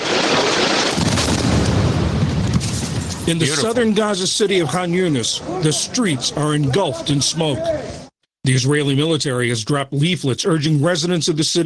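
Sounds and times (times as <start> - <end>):
explosions from Israel's aerial bombardment of Gaza: 0.0 - 4.2
speech: 3.3 - 11.6.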